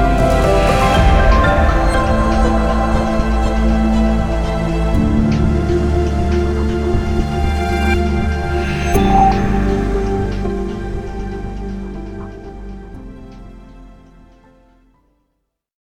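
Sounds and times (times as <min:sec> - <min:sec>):
fast show opener music: 0:00.0 - 0:12.5.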